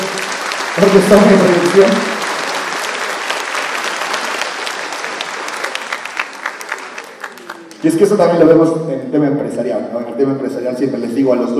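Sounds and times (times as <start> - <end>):
audience applause: 0.0 - 8.2
speech: 0.8 - 2.1, 7.8 - 11.5.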